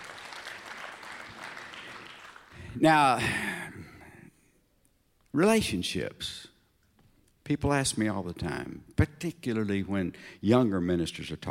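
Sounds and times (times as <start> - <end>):
audience applause: 0.0 - 2.7
speech: 2.8 - 3.5, 5.4 - 6.5, 7.5 - 11.5.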